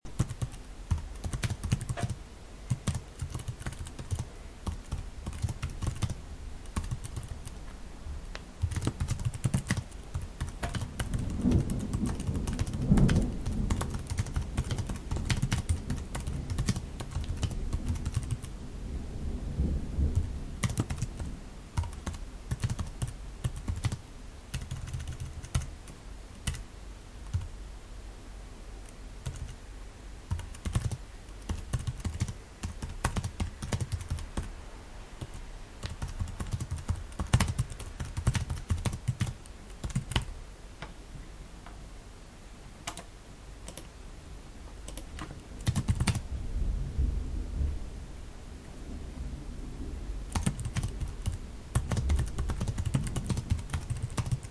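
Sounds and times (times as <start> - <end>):
typing: 0.2 - 7.4, 8.6 - 18.5, 20.2 - 25.7, 29.2 - 29.6, 30.3 - 34.5, 35.2 - 40.3, 42.8 - 43.1, 44.9 - 46.2, 50.3 - 54.4
thunder: 11.1 - 14.1, 17.6 - 20.6, 46.2 - 48.0, 48.6 - 53.5.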